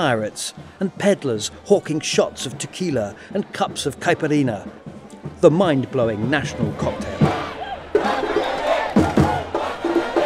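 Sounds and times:
speech: 0.0 - 7.3
street crowd cheering: 0.0 - 10.2.

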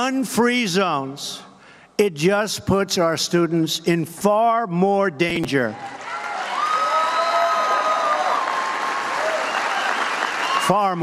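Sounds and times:
speech: 0.0 - 6.0, 10.7 - 11.0
crowd applauding and cheering: 5.8 - 11.0.

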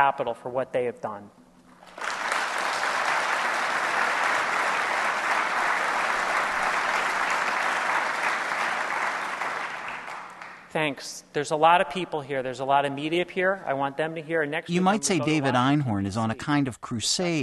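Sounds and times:
speech: 0.0 - 1.4, 10.8 - 17.4
large crowd applauding: 1.8 - 10.6.

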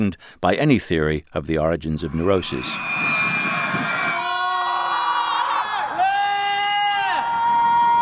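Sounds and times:
speech: 0.0 - 3.0
college students' mass primal scream: 2.1 - 7.9.

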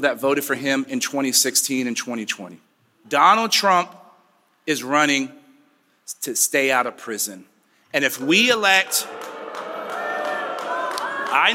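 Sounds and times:
speech: 0.0 - 4.0, 4.7 - 5.4, 6.1 - 9.4, 11.3 - 11.5
crowd booing: 8.6 - 11.5.

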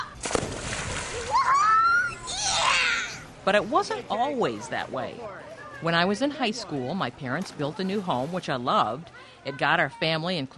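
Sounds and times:
splash of someone jumping into water: 0.2 - 1.7
churning, sloshing water: 0.1 - 2.2, 5.9 - 9.1
speech: 3.5 - 10.5.

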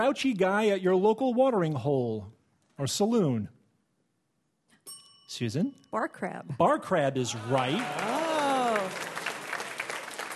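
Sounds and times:
speech: 0.0 - 3.6, 5.3 - 8.2
studio audience applause on a word-game quiz show: 7.3 - 10.3.

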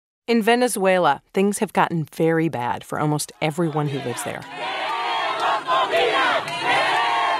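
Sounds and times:
speech: 0.3 - 4.8
crowd chanting outside a supermarket in Caracas Venezuela: 3.3 - 7.3.

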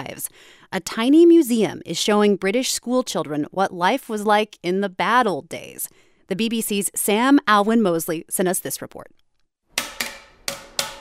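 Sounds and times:
speech: 0.2 - 9.2
cane banging on a wooden desk: 9.8 - 11.0.

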